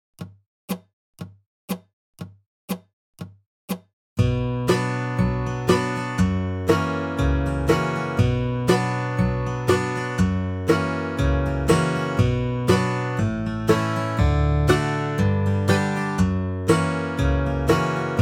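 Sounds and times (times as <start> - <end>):
music loop in B minor at 60 BPM: 4.2 - 18.2.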